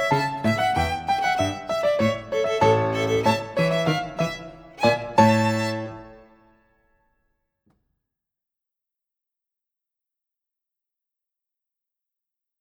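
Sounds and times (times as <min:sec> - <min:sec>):
fiddle playing at a fast tempo: 0:00.0 - 0:06.5.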